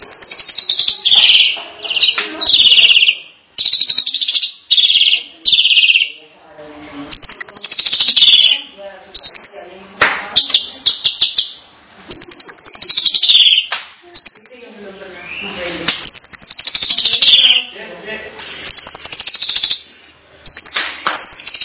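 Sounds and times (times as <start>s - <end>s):
starling singing whistles, chips and squeaks: 0.0s - 6.3s, 7.1s - 17.8s, 18.7s - 21.6s.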